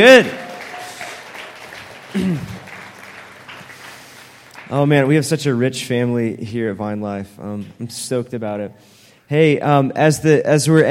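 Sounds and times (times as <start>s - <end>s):
speech: 0.0s - 0.4s, 2.2s - 2.5s, 4.7s - 10.8s
audience applause: 0.0s - 5.3s.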